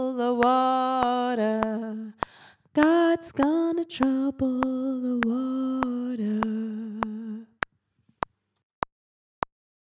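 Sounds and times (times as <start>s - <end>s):
alto voice singing: 0.0s - 7.6s.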